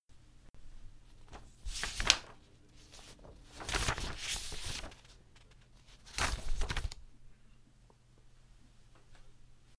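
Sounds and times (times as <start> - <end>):
paper page turning: 1.1 - 7.1.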